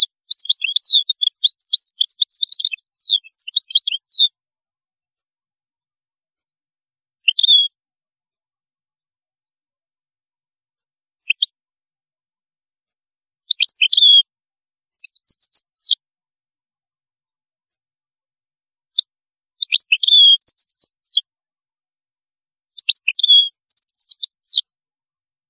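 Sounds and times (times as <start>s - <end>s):
European goldfinch song: 0.0s - 4.4s, 7.2s - 7.8s, 11.2s - 11.6s, 13.4s - 14.3s, 14.9s - 16.0s, 19.0s - 21.3s, 22.7s - 24.7s.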